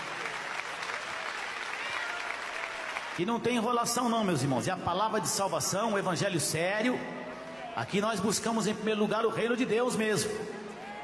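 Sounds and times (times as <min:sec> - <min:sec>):
audience clapping: 0:00.0 - 0:03.7
speech: 0:03.2 - 0:07.2, 0:07.8 - 0:10.6.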